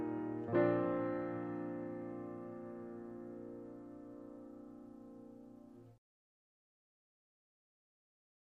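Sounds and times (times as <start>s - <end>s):
solo piano carol: 0.0s - 6.0s.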